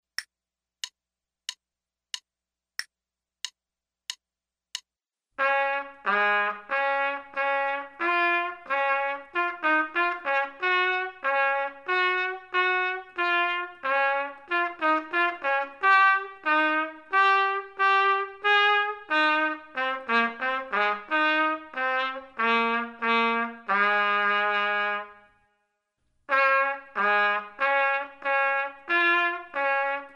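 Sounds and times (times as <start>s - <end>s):
trumpet: 5.4s - 25.6s, 26.3s - 30.1s.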